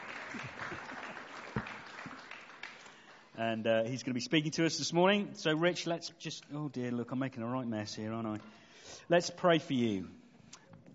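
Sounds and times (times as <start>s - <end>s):
applause: 0.0s - 3.4s
speech: 3.4s - 10.2s.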